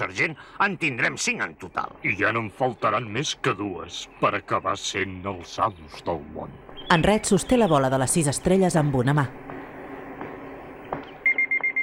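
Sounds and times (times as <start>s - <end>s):
speech: 0.1s - 9.4s
car phone ringing with high electronic beeps: 11.2s - 11.8s.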